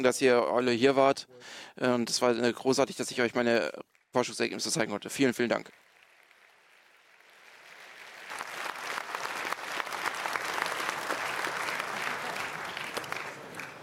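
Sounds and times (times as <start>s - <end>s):
speech: 0.0s - 5.8s
audience applause: 5.6s - 13.8s.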